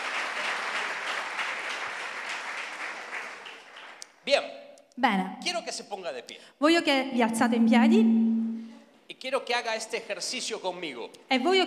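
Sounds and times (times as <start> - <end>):
audience applause: 0.0 - 4.0
speech: 4.3 - 8.3, 9.2 - 11.6.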